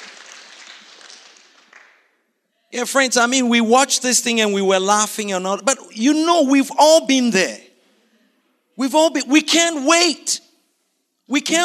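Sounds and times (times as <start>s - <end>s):
audience clapping: 0.0s - 2.2s
speech: 2.7s - 7.6s, 8.8s - 10.5s, 11.3s - 11.6s.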